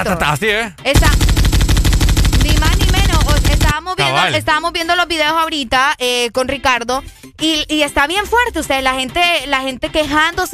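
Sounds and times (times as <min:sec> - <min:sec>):
speech: 0:00.0 - 0:01.4, 0:03.4 - 0:10.5
automatic weapons gunfire: 0:01.0 - 0:03.8.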